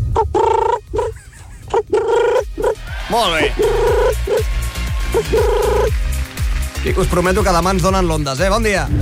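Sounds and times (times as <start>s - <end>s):
person imitating pigeon coos: 0.2s - 2.8s, 3.5s - 4.5s, 5.2s - 5.9s
speech: 3.1s - 4.5s, 5.1s - 6.0s, 6.9s - 9.0s.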